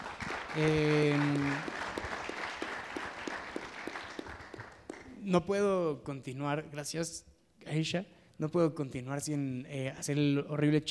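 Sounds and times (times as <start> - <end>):
crowd clapping: 0.0 - 5.2
speech: 0.5 - 1.8, 5.3 - 10.8.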